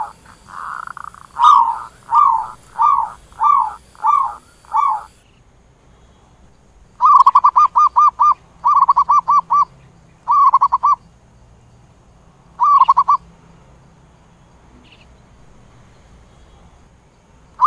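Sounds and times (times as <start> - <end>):
zebra dove cooing: 0.0 - 5.2, 7.0 - 9.7, 10.3 - 11.0, 12.6 - 13.2.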